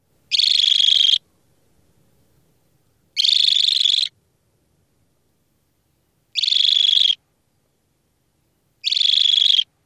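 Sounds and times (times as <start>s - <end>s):
alarm calls: 0.3s - 1.2s, 3.2s - 4.2s, 6.4s - 7.2s, 8.8s - 9.7s.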